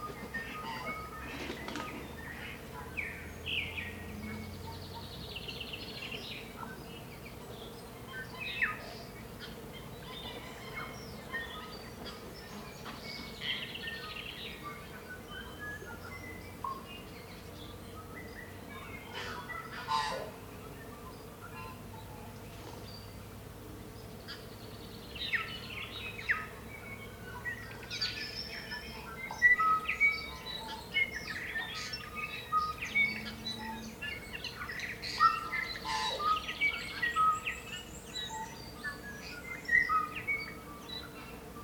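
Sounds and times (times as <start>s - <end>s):
tui morning chorus: 0.0s - 41.6s.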